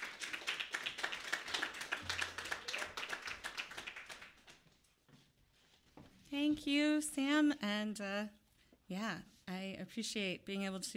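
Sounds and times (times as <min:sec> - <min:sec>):
audience clapping: 0:00.0 - 0:04.8
speech: 0:06.3 - 0:10.9.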